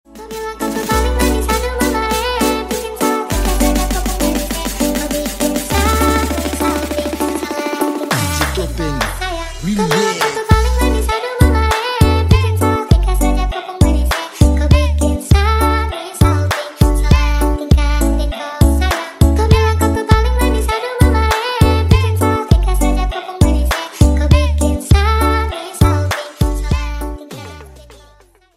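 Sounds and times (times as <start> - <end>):
TikTok remix music: 0.1 - 28.2.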